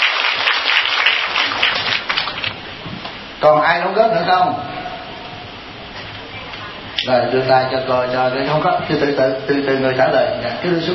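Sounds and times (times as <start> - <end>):
audience at a Buddhist teaching session applauding: 0.0 - 2.6
speech: 3.4 - 4.7, 7.0 - 10.9.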